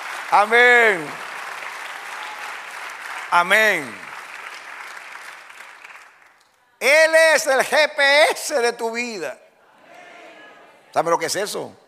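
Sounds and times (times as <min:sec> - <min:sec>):
church congregation applauding during a sermon: 0:00.0 - 0:07.5
speech: 0:00.3 - 0:01.2, 0:03.3 - 0:04.1, 0:06.8 - 0:09.4, 0:10.9 - 0:11.8.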